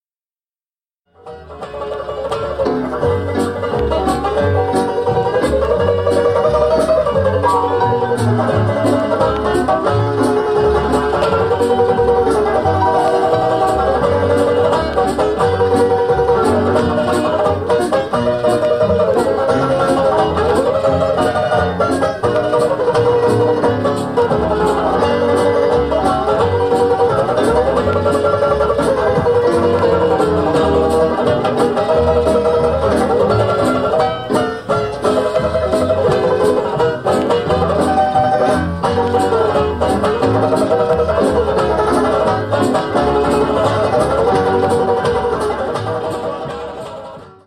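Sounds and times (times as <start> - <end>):
banjo: 1.1 - 47.4.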